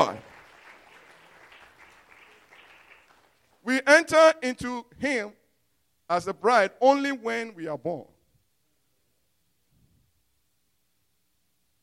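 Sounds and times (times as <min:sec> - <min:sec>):
audience clapping: 0:00.0 - 0:03.8
speech: 0:03.7 - 0:05.4, 0:06.1 - 0:08.1.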